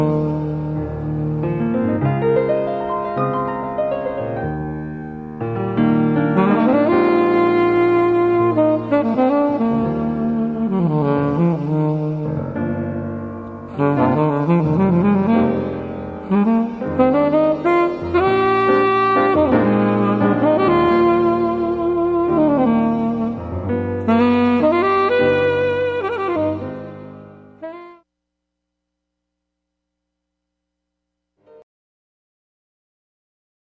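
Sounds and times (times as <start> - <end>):
saxophone: 0.0 - 2.5, 5.8 - 28.1
piano: 0.0 - 28.1, 31.4 - 31.7.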